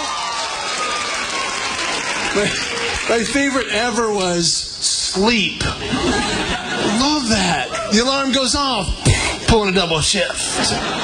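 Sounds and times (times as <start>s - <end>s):
audience clapping hands: 0.0s - 4.5s
laughter: 1.4s - 3.6s, 5.6s - 11.0s
speech: 2.4s - 11.0s.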